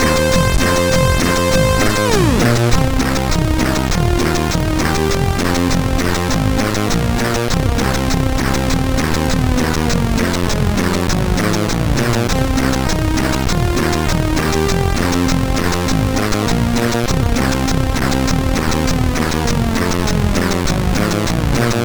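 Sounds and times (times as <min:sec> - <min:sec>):
chiptune music on MOS6581R3 sound chip: 0:00.0 - 0:21.7.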